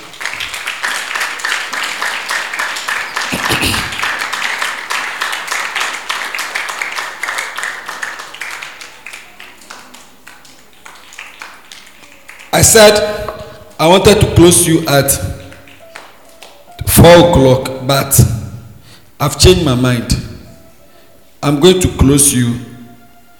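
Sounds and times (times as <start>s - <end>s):
audience clapping: 0.0s - 17.1s
speech: 12.6s - 13.1s, 13.8s - 15.3s, 17.0s - 18.3s, 19.2s - 20.2s, 21.4s - 22.7s.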